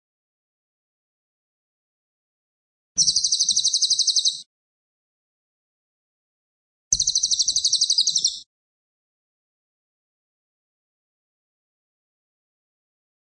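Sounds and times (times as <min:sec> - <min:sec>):
cililin singing fast shrill pulsed trills: 0:03.0 - 0:04.5, 0:07.0 - 0:08.4.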